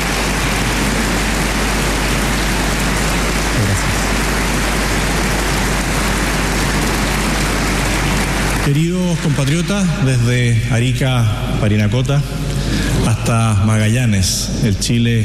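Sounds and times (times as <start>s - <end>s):
audience applause: 0.0s - 10.6s
speech: 8.7s - 15.2s.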